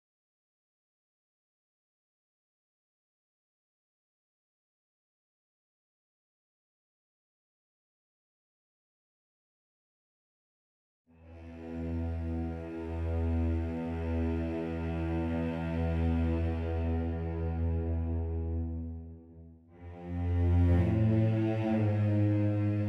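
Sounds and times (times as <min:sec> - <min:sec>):
cellos playing: 0:11.2 - 0:22.8.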